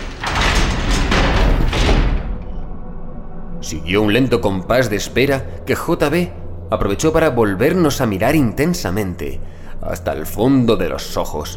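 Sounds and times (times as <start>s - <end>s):
heavy gas chamber door slammed shut: 0.0s - 2.7s
speech: 3.7s - 11.5s.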